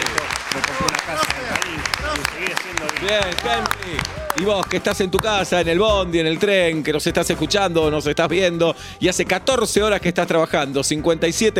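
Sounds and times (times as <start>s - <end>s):
audience applause: 0.0s - 4.9s
speech: 1.1s - 11.5s.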